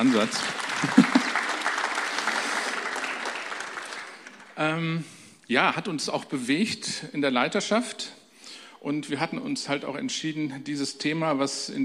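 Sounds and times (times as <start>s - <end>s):
speech: 0.0s - 1.1s, 4.6s - 8.2s, 8.8s - 11.8s
laughter: 0.0s - 3.0s
audience clapping: 0.0s - 4.8s.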